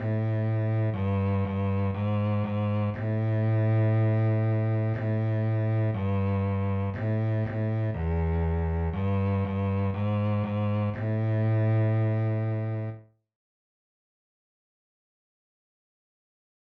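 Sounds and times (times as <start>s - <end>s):
bass sightreading in second position: 0.0s - 13.1s.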